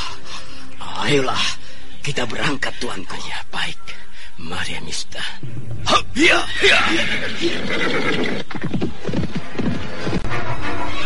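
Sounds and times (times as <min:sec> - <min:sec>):
speech: 0:01.0 - 0:09.5
released unsaddled horse whinnying: 0:06.6 - 0:09.4
horse hooves clip-clopping in a trotting rhythm: 0:07.5 - 0:10.5.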